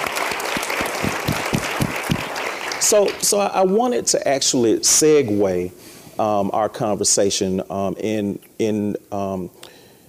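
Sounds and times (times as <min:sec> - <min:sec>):
crowd clapping: 0:00.0 - 0:03.5
speech: 0:02.9 - 0:09.6.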